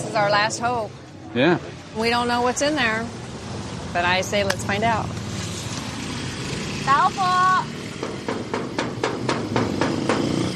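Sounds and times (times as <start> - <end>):
speech: 0.1 - 3.2, 4.0 - 5.2, 6.9 - 7.8
knocking on a door: 8.0 - 10.4.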